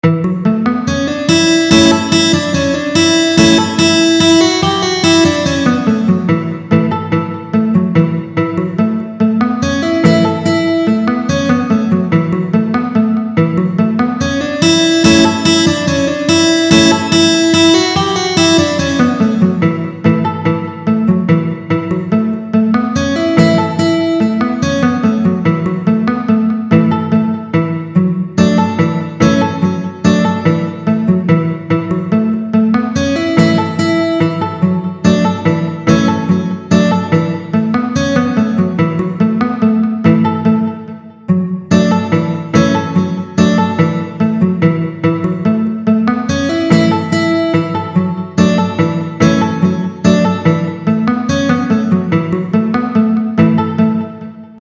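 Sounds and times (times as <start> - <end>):
banjo: 0.1 - 54.4.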